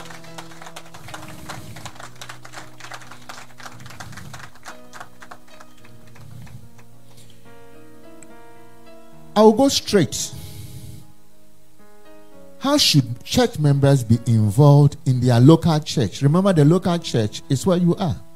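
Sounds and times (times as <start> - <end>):
audience clapping: 0.0 - 6.9
speech: 9.4 - 10.4, 12.6 - 18.2.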